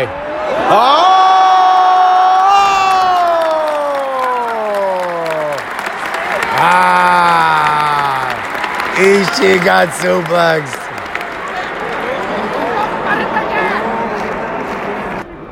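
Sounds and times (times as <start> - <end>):
speech: 0.0 - 1.0, 9.1 - 10.8
wrestling arena crowd cheering: 0.0 - 15.4
arena crowd applauding: 2.9 - 15.2.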